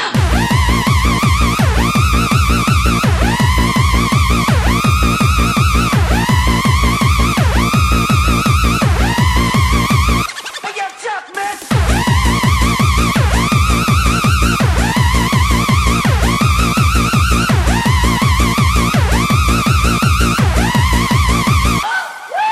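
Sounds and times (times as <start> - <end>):
techno music: 0.1 - 22.3.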